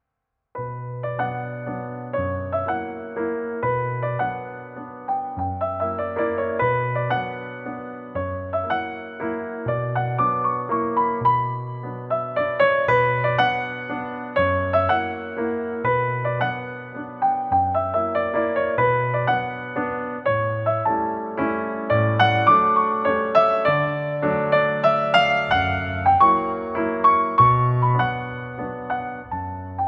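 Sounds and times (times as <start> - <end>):
Nord Grand piano waltz in B minor: 0.6 - 29.8.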